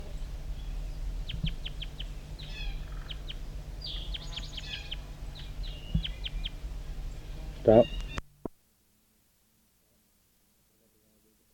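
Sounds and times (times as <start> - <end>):
steady low rumble: 0.0 - 8.2
wild bird calling with sharp high chirps and trills: 0.1 - 8.2
speech: 7.7 - 8.0.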